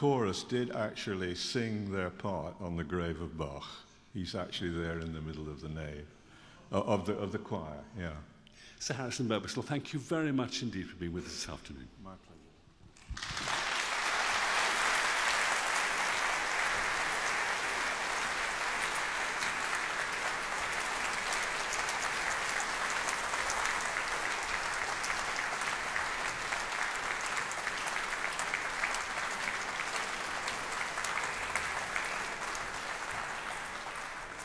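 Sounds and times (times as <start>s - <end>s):
speech: 0.0s - 12.4s
large audience applause in a concert hall: 13.0s - 34.4s.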